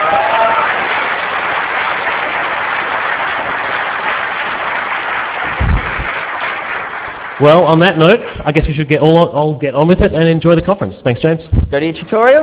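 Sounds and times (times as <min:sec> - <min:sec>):
conference audience applause: 0:00.0 - 0:07.8
speech: 0:07.4 - 0:12.4.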